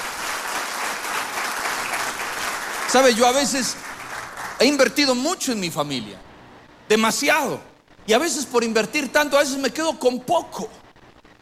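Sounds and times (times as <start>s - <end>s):
church congregation clapping during a sermon: 0.0s - 5.6s
speech: 2.9s - 3.9s, 4.6s - 6.3s, 6.9s - 10.8s.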